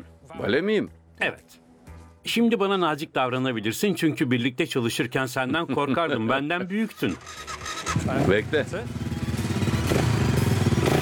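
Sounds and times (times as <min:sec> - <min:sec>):
speech: 0:00.4 - 0:01.6, 0:02.2 - 0:09.1
off-road style motorbike engine running: 0:07.0 - 0:11.0.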